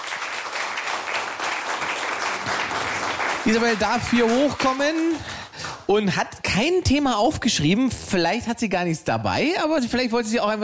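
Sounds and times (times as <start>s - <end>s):
audience applause: 0.0s - 5.9s
speech: 3.4s - 10.6s.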